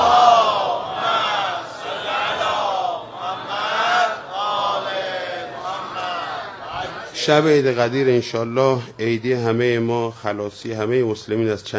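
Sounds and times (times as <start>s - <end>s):
crowd chanting salawat in unison: 0.0s - 7.2s
speech: 7.2s - 11.7s.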